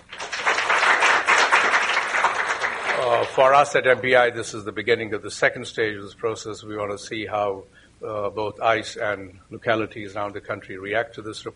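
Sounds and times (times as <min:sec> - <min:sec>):
audience applause: 0:00.0 - 0:03.7
speech: 0:03.0 - 0:11.5.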